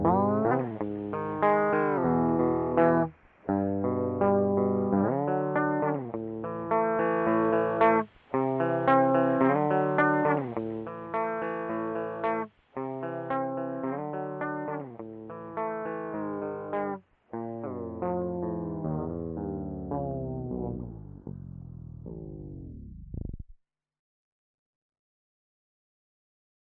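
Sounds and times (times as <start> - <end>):
analog looper: 0.0 - 23.6.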